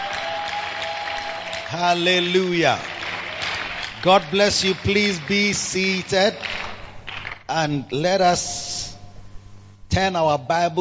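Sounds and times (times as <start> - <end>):
audience clapping hands: 0.0 - 7.5
speech: 1.7 - 2.9, 4.0 - 6.6, 7.5 - 8.6, 10.0 - 10.8.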